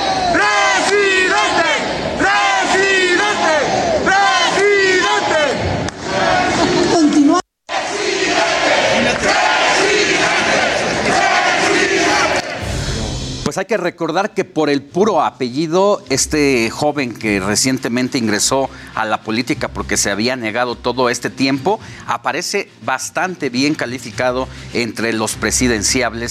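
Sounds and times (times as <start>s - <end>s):
crowd chanting at an event: 0.0s - 13.1s
speech: 13.6s - 26.2s.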